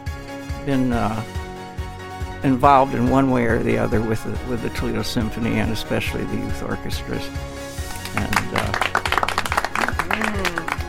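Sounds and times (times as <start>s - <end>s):
speech: 0.7s - 1.4s, 2.4s - 7.5s, 8.1s - 8.8s
studio audience applause for a guest: 7.8s - 10.8s.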